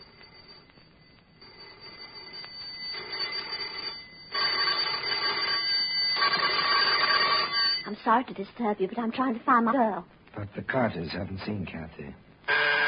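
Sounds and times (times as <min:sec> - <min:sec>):
doorbell ringing: 0:00.0 - 0:08.0
speech: 0:08.0 - 0:12.8.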